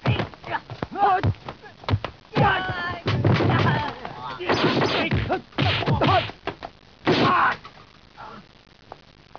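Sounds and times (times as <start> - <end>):
fight sounds: 0.9 - 7.6.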